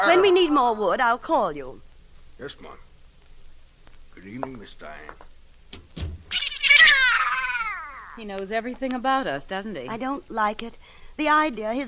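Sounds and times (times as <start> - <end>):
speech: 0.1 - 2.9, 4.2 - 5.3, 8.2 - 11.8
soft thumps: 3.8 - 6.4
cat meowing: 6.3 - 8.2.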